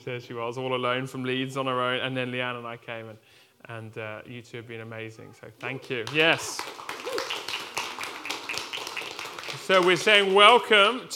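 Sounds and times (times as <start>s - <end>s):
speech: 0.0s - 6.9s, 9.7s - 11.1s
audience clapping: 5.6s - 10.9s.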